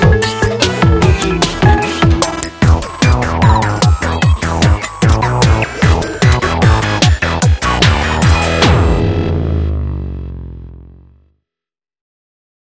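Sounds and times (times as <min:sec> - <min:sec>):
generic children's karaoke music: 0:00.0 - 0:09.0.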